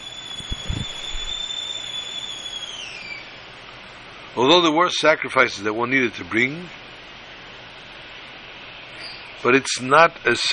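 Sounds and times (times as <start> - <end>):
whistling kettle: 0.0 - 4.7, 8.9 - 9.4
speech: 4.4 - 6.8, 9.4 - 10.5.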